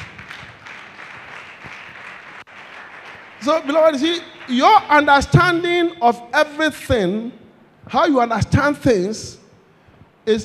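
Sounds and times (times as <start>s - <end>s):
church audience clapping hands: 0.0s - 5.1s
speech: 3.4s - 9.4s, 10.3s - 10.4s.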